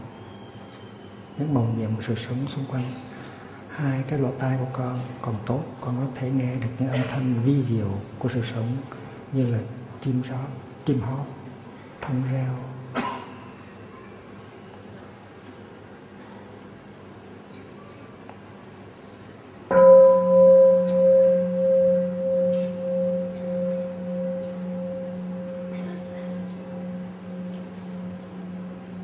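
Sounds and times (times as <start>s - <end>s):
speech: 1.4s - 3.1s, 3.8s - 11.4s, 12.0s - 13.1s
bell struck: 19.7s - 29.0s.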